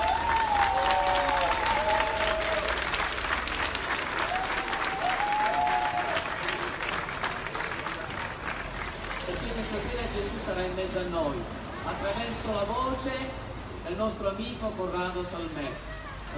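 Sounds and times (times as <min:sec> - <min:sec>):
audience applause: 0:00.0 - 0:09.8
speech: 0:11.0 - 0:16.3.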